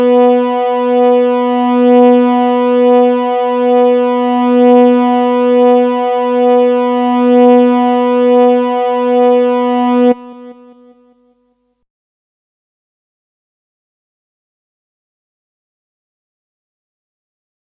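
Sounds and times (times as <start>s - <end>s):
second string B note: 0.0s - 10.9s.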